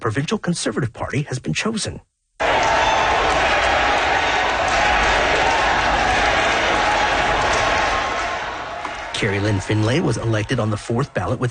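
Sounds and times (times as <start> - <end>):
speech: 0.0 - 2.2, 9.2 - 11.4
crowd of supporters cheering and chanting a name: 2.4 - 11.4.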